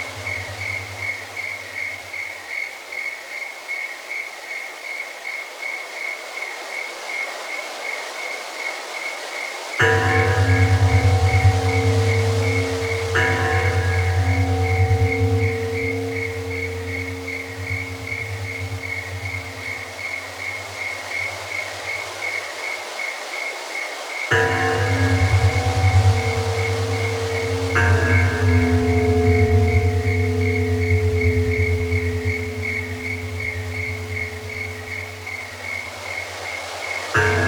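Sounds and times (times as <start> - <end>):
Japanese bells: 0.0 - 2.4, 9.8 - 22.7, 24.3 - 37.4
relaxing spa music: 0.0 - 3.0, 6.0 - 37.4.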